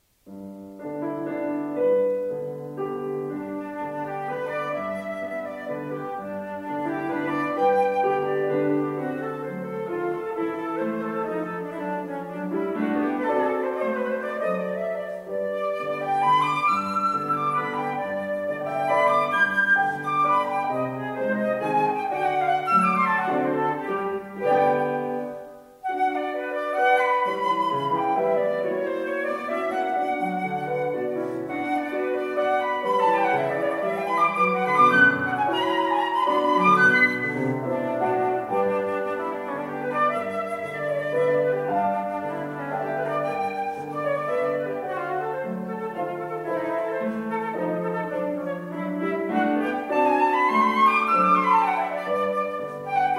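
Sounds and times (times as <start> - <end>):
moderately fast instrumental music: 0.0 - 53.1.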